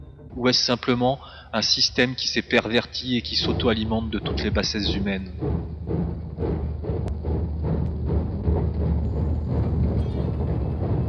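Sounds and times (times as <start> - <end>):
train pulling into a station: 0.0 - 11.0
speech: 0.4 - 6.1
train clanks and thuds: 3.3 - 11.0.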